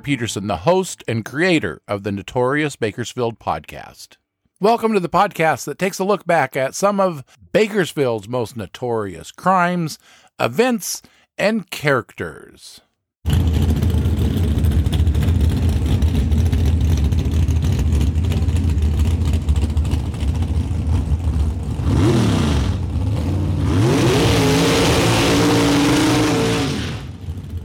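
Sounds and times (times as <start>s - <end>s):
speech: 0.0s - 13.8s
drag racing car engine idling and revving: 13.3s - 27.6s.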